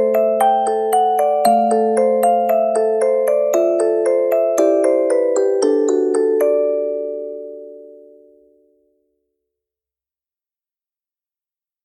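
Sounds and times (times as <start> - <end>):
music box: 0.0 - 8.0.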